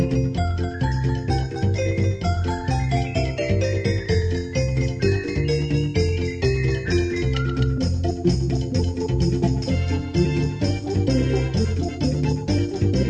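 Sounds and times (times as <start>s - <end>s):
Hammond organ playing a cha cha: 0.0s - 13.0s.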